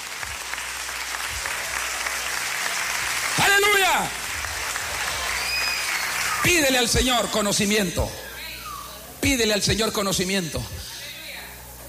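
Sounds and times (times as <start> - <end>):
audience applause: 0.0 - 7.3
speech: 4.0 - 4.2, 6.4 - 8.2, 9.2 - 10.9.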